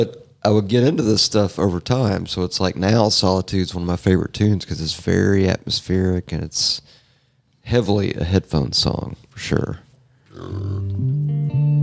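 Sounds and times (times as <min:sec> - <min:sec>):
speech: 0:00.0 - 0:07.0, 0:07.7 - 0:09.8, 0:10.4 - 0:11.1
person burping: 0:10.3 - 0:11.0.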